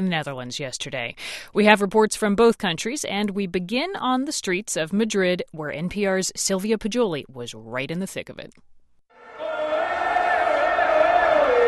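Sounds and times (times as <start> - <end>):
speech: 0.0 - 8.8
street crowd cheering after World Cup win in Cibeles Square: 9.1 - 11.6.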